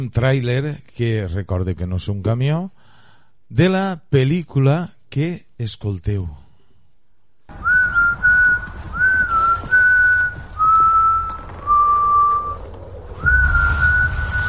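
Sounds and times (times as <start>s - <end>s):
speech: 0.0s - 2.8s, 3.5s - 6.4s
person whistling: 7.6s - 12.6s, 13.2s - 14.4s.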